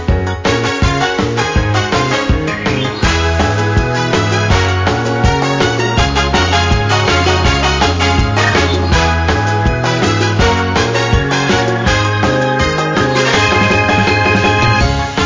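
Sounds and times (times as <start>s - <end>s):
raid box gacha background music loop: 0.1s - 15.1s.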